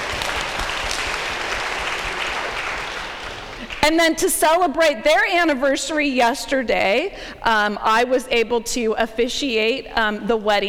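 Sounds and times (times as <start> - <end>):
audience clapping: 0.0 - 4.0
speech: 3.8 - 10.6.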